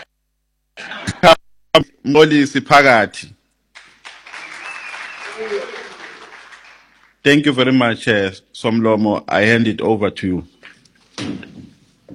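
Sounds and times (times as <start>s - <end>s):
speech: 1.2s - 3.4s, 7.2s - 10.6s, 11.2s - 11.6s
audience applause at a gathering: 3.8s - 7.2s.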